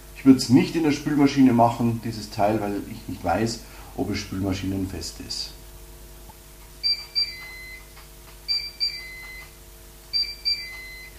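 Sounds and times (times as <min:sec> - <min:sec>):
faint steady hum: 0:00.0 - 0:11.1
speech: 0:00.2 - 0:05.6
grill beeping when preheating is finished: 0:06.8 - 0:11.1.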